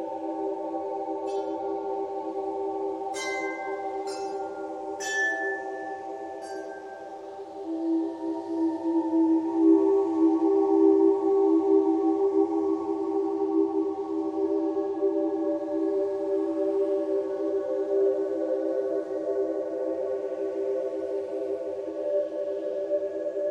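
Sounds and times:
calming ambient music of long held tones: 0:00.0 - 0:23.5
bright chime strikes: 0:03.2 - 0:06.9.

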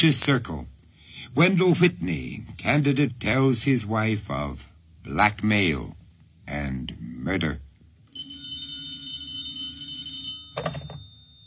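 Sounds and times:
speech: 0:00.0 - 0:07.6
old telephone bell ringing: 0:08.1 - 0:11.4
telephone receiver clunk: 0:10.6 - 0:11.1.

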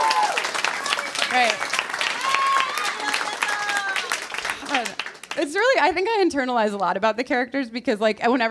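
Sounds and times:
audience clapping: 0:00.0 - 0:05.8
speech: 0:01.3 - 0:01.7, 0:05.5 - 0:08.4.

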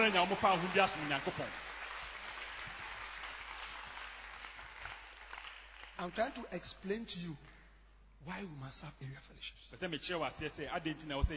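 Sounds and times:
speech: 0:00.0 - 0:01.7, 0:06.0 - 0:07.5, 0:08.2 - 0:11.3
audience clapping hands: 0:00.0 - 0:06.6.

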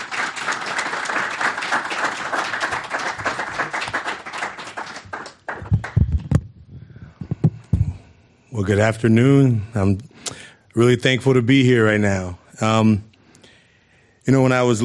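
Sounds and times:
audience applause welcoming guests: 0:00.0 - 0:06.3
scattered claps and thuds: 0:04.8 - 0:06.5, 0:07.2 - 0:08.0
speech: 0:08.6 - 0:10.1, 0:10.8 - 0:13.1, 0:14.3 - 0:14.8.

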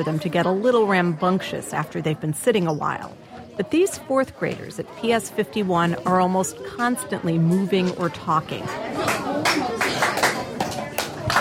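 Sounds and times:
speech: 0:00.0 - 0:09.8
children chattering: 0:00.0 - 0:11.4
teacher's rhythmic hand-clap pattern calling class to order: 0:09.0 - 0:11.4.

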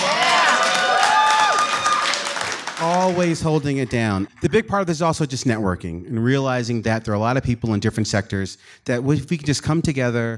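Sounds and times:
whoops and cheering voices: 0:00.0 - 0:03.2
crowd applauding: 0:00.0 - 0:04.6
speech: 0:03.1 - 0:10.3.

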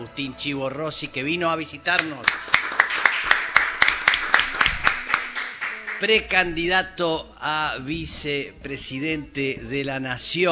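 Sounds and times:
speech: 0:00.0 - 0:02.5, 0:06.0 - 0:10.4
audience applause: 0:02.0 - 0:06.3.

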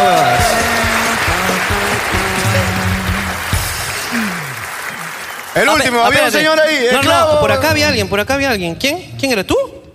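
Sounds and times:
audience applause: 0:00.0 - 0:06.8
scattered voices calling out and cheering: 0:00.0 - 0:07.1
speech: 0:05.6 - 0:09.8.

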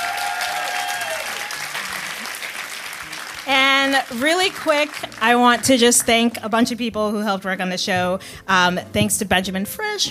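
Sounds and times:
applause: 0:00.0 - 0:06.2
speech: 0:03.9 - 0:10.0.

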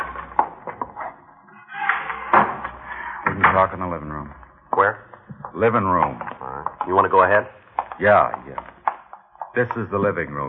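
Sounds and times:
door opening: 0:00.0 - 0:07.0
speech: 0:03.6 - 0:08.7, 0:09.6 - 0:10.4.

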